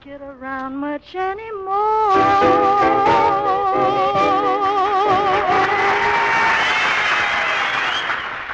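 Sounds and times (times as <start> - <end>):
speech: 0.7 - 4.5
applause: 5.5 - 8.5.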